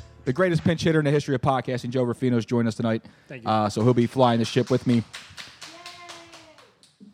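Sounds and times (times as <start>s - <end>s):
speech: 0.2s - 5.5s
roaring round of applause: 3.7s - 7.1s.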